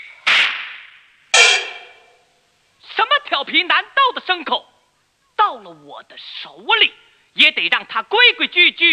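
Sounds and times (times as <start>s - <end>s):
whip crack: 0.2s - 1.0s
speech: 3.5s - 4.7s, 5.5s - 8.9s.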